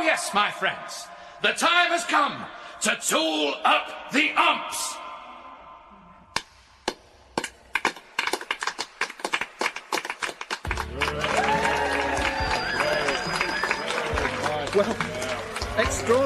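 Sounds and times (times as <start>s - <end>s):
speech: 0.1s - 5.0s, 14.8s - 15.1s, 15.8s - 16.2s
audience applauding at a match at Whitecoats: 6.9s - 16.2s
crowd whooping at a match at Whitecoats: 10.7s - 16.2s.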